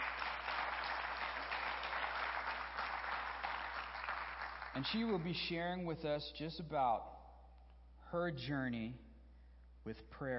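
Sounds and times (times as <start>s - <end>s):
audience applause: 0.0s - 5.2s
speech: 4.7s - 7.2s, 8.1s - 9.1s, 9.8s - 10.3s.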